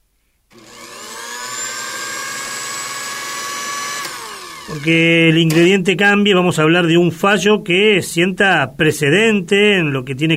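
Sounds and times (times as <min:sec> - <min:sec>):
electric blender running: 0:00.5 - 0:05.6
speech: 0:04.7 - 0:10.3.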